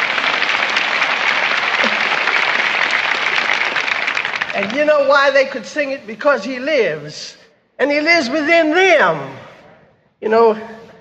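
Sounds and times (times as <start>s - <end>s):
audience applause: 0.0s - 5.1s
speech: 4.6s - 9.4s, 10.2s - 10.8s.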